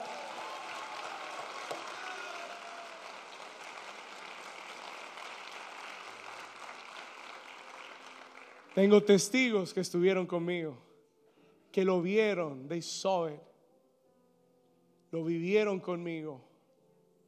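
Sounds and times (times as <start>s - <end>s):
audience applause: 0.0s - 9.1s
speech: 8.8s - 10.9s, 11.7s - 13.5s, 15.1s - 16.5s.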